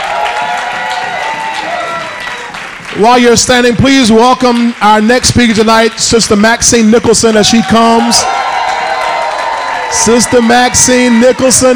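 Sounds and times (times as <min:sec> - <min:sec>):
audience applauding a speaker at a church gathering: 0:00.0 - 0:11.7
speech: 0:03.0 - 0:08.4, 0:09.9 - 0:11.7.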